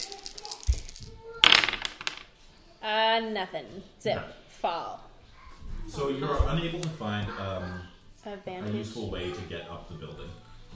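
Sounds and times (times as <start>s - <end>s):
dice rolled for a tabletop role-playing game check: 0.0s - 2.4s
speech: 2.8s - 5.1s, 5.8s - 10.7s.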